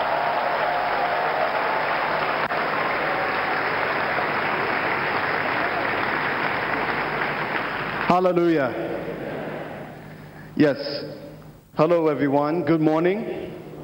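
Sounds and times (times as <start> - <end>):
church congregation clapping for Jesus at a service with an evangelist: 0.0 - 9.7
speech: 8.1 - 9.3, 10.6 - 11.2, 11.8 - 13.5.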